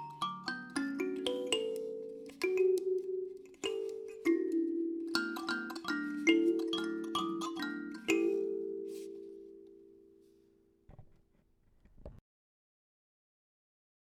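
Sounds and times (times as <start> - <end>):
15-note mbira playing: 0.0 - 10.0.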